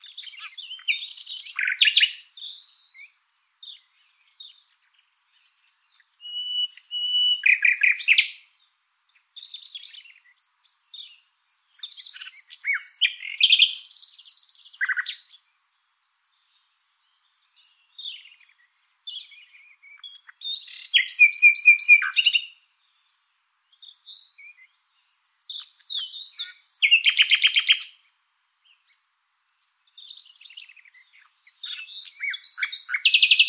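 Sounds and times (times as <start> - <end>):
common nightingale singing: 0.0 - 33.4.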